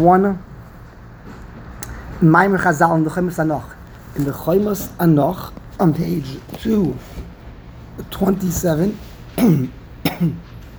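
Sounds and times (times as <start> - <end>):
speech: 0.0 - 0.5, 2.2 - 7.3, 8.0 - 10.5
throat clearing during a lecture: 9.4 - 10.5.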